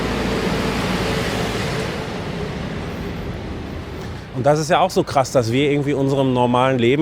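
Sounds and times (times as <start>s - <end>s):
garbage truck passing on street: 0.0s - 5.5s
speech: 4.4s - 6.9s.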